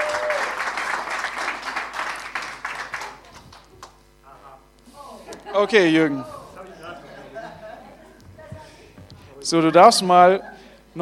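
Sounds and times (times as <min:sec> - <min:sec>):
audience applause: 0:00.0 - 0:04.0
laughter: 0:05.1 - 0:08.9, 0:10.1 - 0:10.9
speech: 0:05.5 - 0:06.4, 0:09.5 - 0:11.0.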